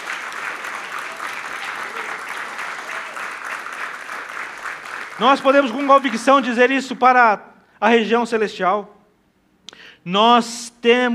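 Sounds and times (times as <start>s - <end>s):
audience applause: 0.0s - 6.7s
speech: 5.2s - 9.0s, 10.0s - 11.1s.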